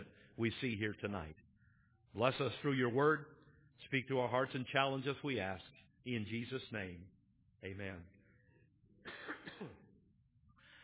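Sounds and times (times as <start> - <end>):
speech: 0.0 - 1.5, 2.1 - 8.2, 9.6 - 9.8
man clearing his throat with something stuck in it: 9.0 - 10.0.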